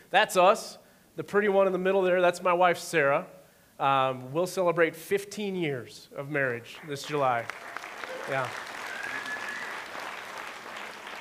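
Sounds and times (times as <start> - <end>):
speech: 0.1 - 8.7
audience applause: 6.8 - 11.1.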